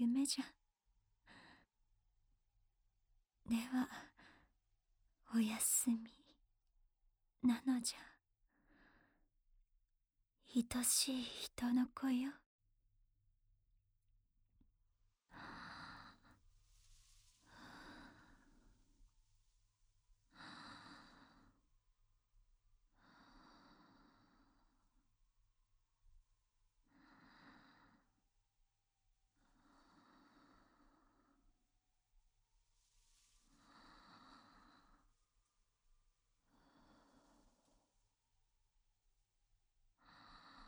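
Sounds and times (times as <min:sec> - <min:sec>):
ASMR sleep voice: 0:00.0 - 0:00.6, 0:03.4 - 0:04.6, 0:05.3 - 0:06.5, 0:07.4 - 0:09.1, 0:10.5 - 0:12.4, 0:15.2 - 0:40.6.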